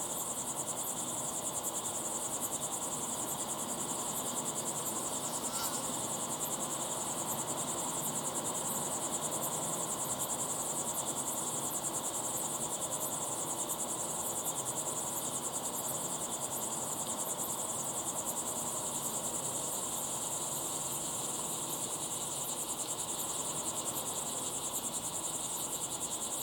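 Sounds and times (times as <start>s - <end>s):
cricket chorus: 0.0s - 26.4s
hiss: 3.8s - 6.7s.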